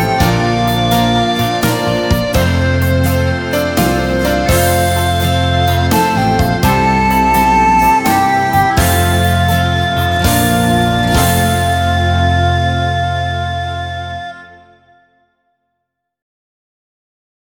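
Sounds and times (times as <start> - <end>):
recorder playing a hymn: 0.0 - 15.2.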